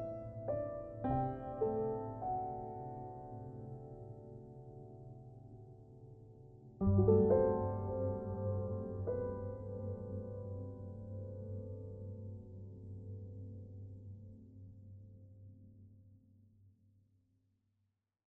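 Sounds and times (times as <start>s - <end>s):
piano interlude: 0.0s - 13.3s.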